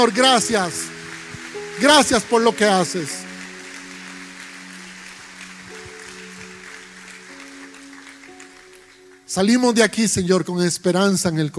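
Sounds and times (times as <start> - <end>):
speech: 0.0 - 1.0, 1.8 - 3.2, 9.3 - 11.5
audience applause: 0.0 - 9.3.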